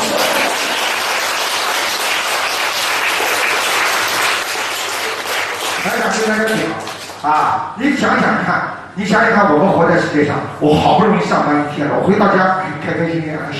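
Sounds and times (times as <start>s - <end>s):
audience applause: 0.0s - 7.2s
speech: 6.2s - 13.5s.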